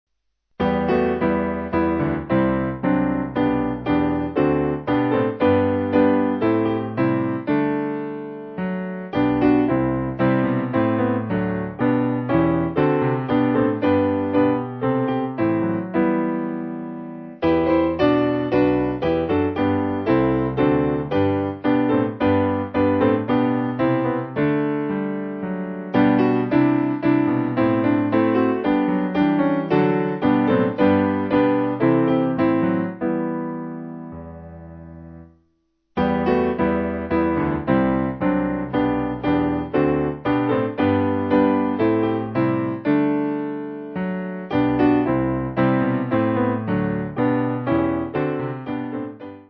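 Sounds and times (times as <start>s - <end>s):
piano: 0.6s - 49.4s.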